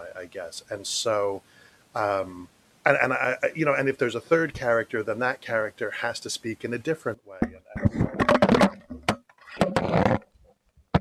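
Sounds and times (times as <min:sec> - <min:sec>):
speech: 0:00.2 - 0:08.0
microphone knocked over: 0:07.4 - 0:10.9.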